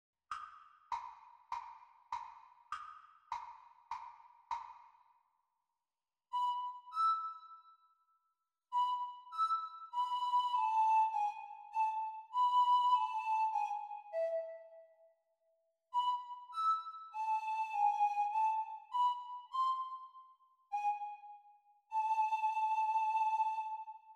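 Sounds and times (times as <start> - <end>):
descant recorder performance: 6.3 - 7.6, 8.7 - 14.8, 16.0 - 24.1.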